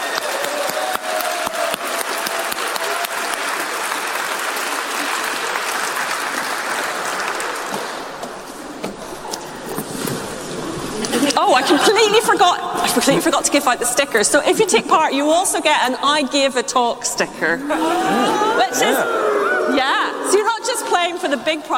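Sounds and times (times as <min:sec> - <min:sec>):
crowd clapping: 0:00.0 - 0:09.9
laughter: 0:10.6 - 0:15.7, 0:17.3 - 0:20.9
speech: 0:11.6 - 0:21.7.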